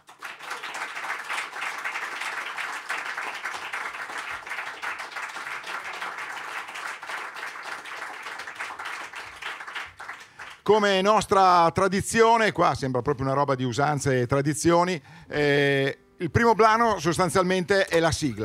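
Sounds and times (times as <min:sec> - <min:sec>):
audience applause: 0:00.0 - 0:10.7
speech: 0:10.7 - 0:18.4.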